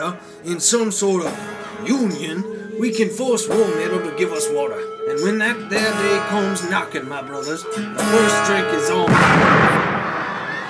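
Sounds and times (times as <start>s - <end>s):
speech: 0.0s - 10.0s
dynamite explosion at water tower: 9.1s - 10.6s.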